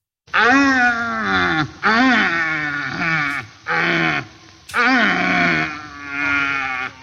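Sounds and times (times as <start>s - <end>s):
red deer stag bellowing in rut: 0.3s - 7.0s.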